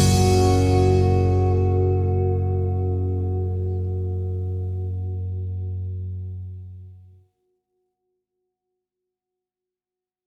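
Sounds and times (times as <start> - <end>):
Gb major triad vamp: 0.0 - 5.3.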